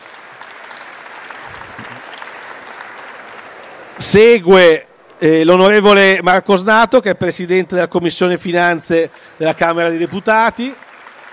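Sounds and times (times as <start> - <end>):
audience applause: 0.0 - 5.4, 8.4 - 11.3
speech: 4.0 - 10.8.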